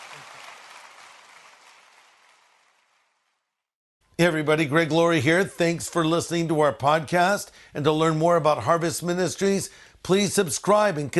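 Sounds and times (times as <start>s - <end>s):
audience applause: 0.0s - 3.1s
speech: 4.2s - 11.1s.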